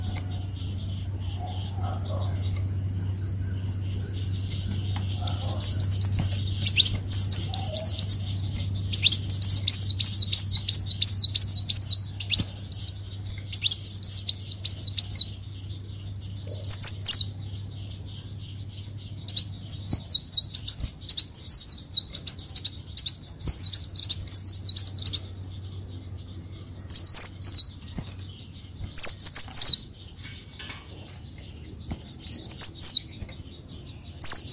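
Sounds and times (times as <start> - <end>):
steady low hum: 0.0 - 34.5
leafbird song: 5.2 - 15.4, 16.3 - 17.4, 18.6 - 25.3, 26.8 - 27.8, 28.9 - 29.9, 32.2 - 33.2, 34.2 - 34.5.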